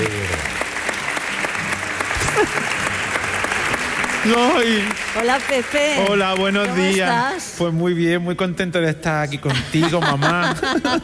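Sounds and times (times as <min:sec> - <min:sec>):
audience applause: 0:00.0 - 0:07.5
laughter: 0:02.1 - 0:03.1, 0:09.3 - 0:11.0
speech: 0:04.2 - 0:11.0.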